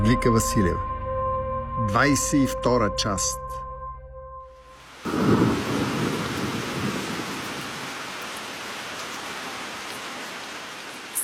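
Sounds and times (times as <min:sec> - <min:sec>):
speech: 0:00.0 - 0:00.9, 0:01.8 - 0:03.5
pouring rain in a storm: 0:04.6 - 0:11.2
wind roaring: 0:05.0 - 0:09.0.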